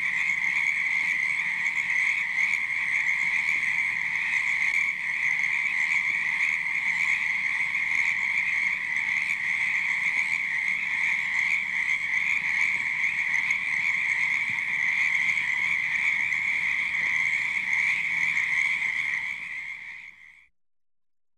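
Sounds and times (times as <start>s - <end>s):
cicadas: 0.0s - 20.4s
frogs croaking at night: 0.0s - 20.5s.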